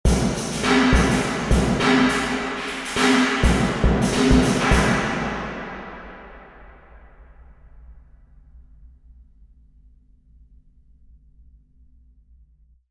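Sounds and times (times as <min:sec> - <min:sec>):
drum in a marble hall: 0:00.0 - 0:07.3.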